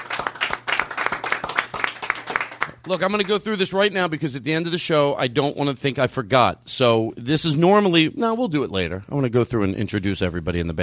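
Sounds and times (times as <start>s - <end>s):
audience applause for a band at a live show: 0.0s - 3.3s
speech: 2.9s - 10.8s.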